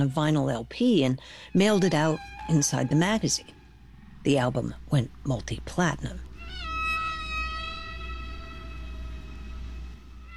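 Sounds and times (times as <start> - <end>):
speech: 0.0 - 3.6, 4.2 - 6.3
low rumbling wash: 0.0 - 10.3
whale song: 0.0 - 10.3.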